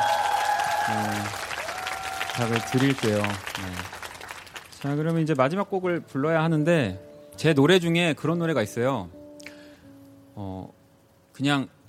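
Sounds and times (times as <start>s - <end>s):
audience applause: 0.0s - 5.5s
speech: 0.9s - 1.5s, 2.4s - 4.0s, 4.8s - 9.2s, 10.4s - 10.8s, 11.4s - 11.8s.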